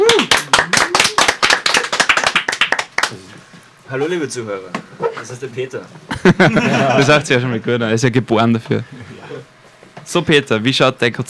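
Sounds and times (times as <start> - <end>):
small audience applause: 0.0 - 3.3
speech: 3.9 - 9.0, 10.1 - 11.2
laughter: 6.1 - 7.5.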